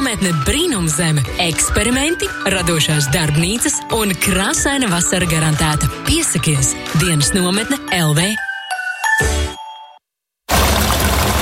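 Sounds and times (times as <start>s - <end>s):
speech: 0.1s - 8.5s
fuel pouring into a car's tank: 10.5s - 11.4s.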